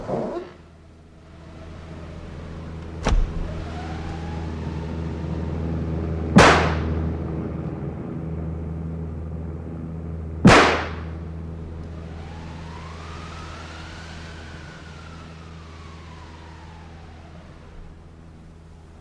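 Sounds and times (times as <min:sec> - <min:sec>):
airplane flying overhead: 0:00.0 - 0:18.9
sharp bangs: 0:02.9 - 0:04.2, 0:06.3 - 0:07.1, 0:10.4 - 0:11.2.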